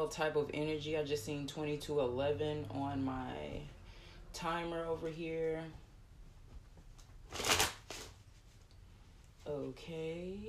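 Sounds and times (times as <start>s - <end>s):
speech: 0.0s - 3.8s, 4.4s - 5.8s, 9.5s - 10.4s
tarot cards being shuffled: 7.0s - 8.6s.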